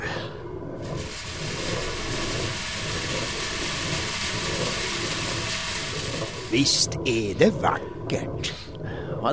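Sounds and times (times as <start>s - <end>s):
millstones grinding grain into flour: 0.9s - 7.6s
speech: 6.5s - 8.6s.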